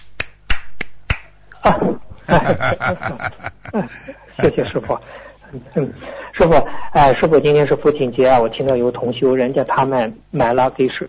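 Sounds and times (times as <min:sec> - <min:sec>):
hand clapping: 0:00.0 - 0:01.4
laughter: 0:01.6 - 0:06.0
speech: 0:01.6 - 0:11.0.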